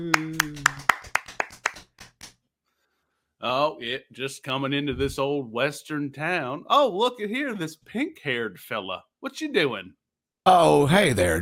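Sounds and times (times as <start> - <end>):
audience clapping in rhythm: 0.0 - 2.4
speech: 3.4 - 11.4.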